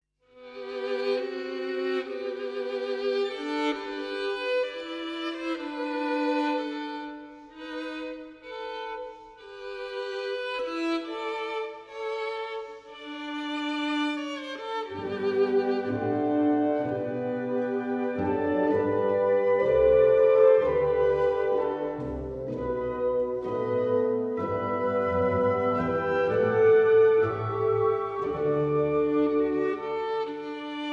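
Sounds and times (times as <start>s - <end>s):
violin concerto: 0.3s - 30.9s.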